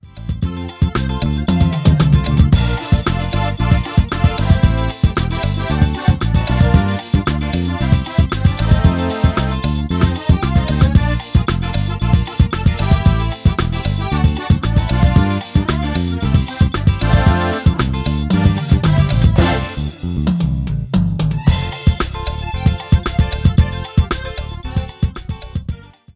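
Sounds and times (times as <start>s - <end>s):
forró music sample: 0.0s - 26.1s.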